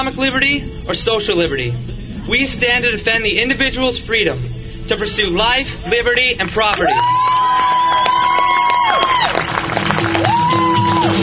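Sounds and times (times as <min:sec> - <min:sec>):
speech: 0:00.0 - 0:07.6
applause in a chamber: 0:06.7 - 0:11.2.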